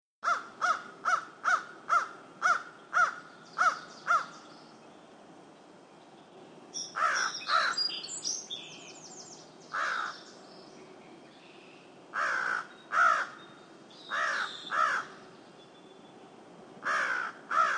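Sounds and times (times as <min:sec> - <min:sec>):
crow cawing: 0:00.2 - 0:04.4, 0:06.9 - 0:07.8, 0:09.7 - 0:10.2, 0:12.1 - 0:13.4, 0:14.1 - 0:15.2, 0:16.8 - 0:17.7.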